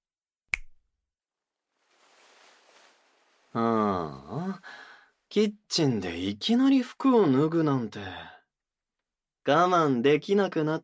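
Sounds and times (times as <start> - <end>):
finger snap: 0.5 - 0.8
faint breathy hiss: 1.8 - 5.3
speech: 3.6 - 8.4, 9.5 - 10.8.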